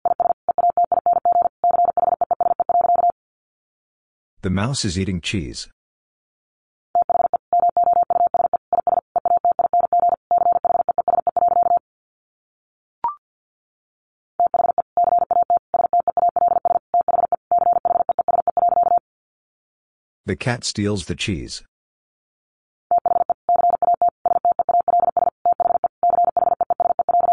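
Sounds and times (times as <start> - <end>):
Morse code tones at 50 words per minute: 0.1 - 3.2, 7.0 - 11.8, 14.4 - 19.0, 22.9 - 27.3
speech: 4.4 - 5.8, 20.3 - 21.7.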